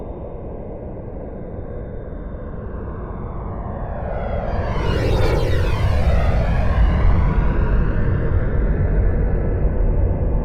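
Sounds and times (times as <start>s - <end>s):
Boeing 787 plane flying by close: 2.5s - 10.3s.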